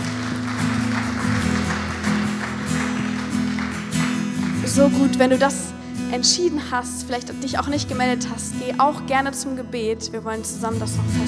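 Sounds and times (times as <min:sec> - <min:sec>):
audience applause: 0:00.0 - 0:05.3
speech: 0:04.8 - 0:11.2.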